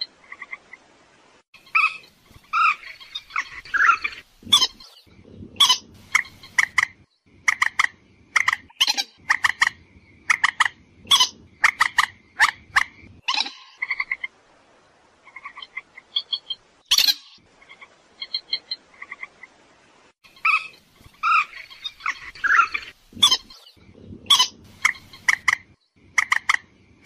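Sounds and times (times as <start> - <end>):
purple swamphen screeching and clucking: 1.7 - 14.3, 20.3 - 27.0.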